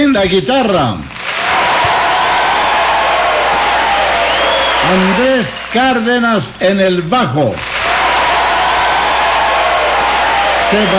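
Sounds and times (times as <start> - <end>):
speech: 0.0 - 1.1, 4.8 - 7.7, 10.7 - 10.9
audience applause: 1.1 - 6.2, 7.6 - 10.9.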